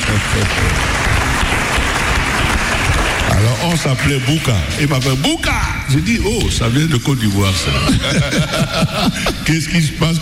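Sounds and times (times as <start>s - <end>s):
audience applause: 0.0s - 4.6s
speech: 3.7s - 10.2s
laughter: 7.3s - 10.2s.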